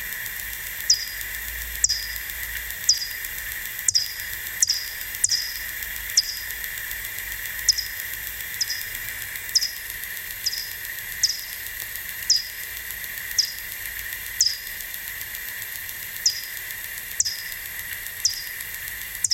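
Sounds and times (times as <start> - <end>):
continuous hiss: 0.0 - 19.3
bat echolocation sweeps: 0.1 - 19.3.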